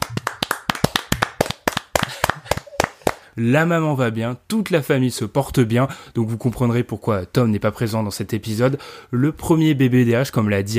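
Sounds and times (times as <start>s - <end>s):
small group clapping: 0.0s - 3.3s
speech: 3.4s - 10.7s.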